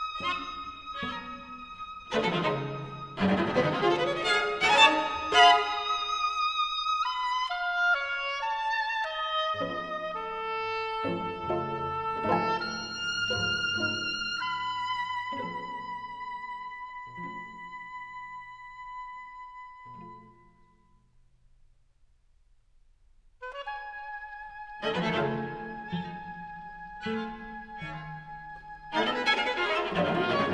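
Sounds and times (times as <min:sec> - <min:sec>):
oboe quartet playing: 0:00.0 - 0:06.5, 0:07.6 - 0:16.2, 0:23.5 - 0:30.5.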